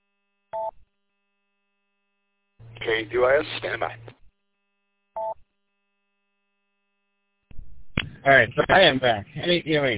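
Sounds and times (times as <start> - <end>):
telephone call tone: 0.6 - 0.8, 5.2 - 5.4
speech: 2.8 - 4.2, 8.2 - 9.9.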